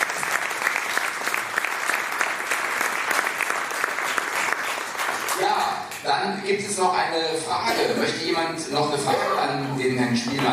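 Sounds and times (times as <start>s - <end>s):
applause: 0.0s - 6.0s
speech: 5.8s - 10.5s.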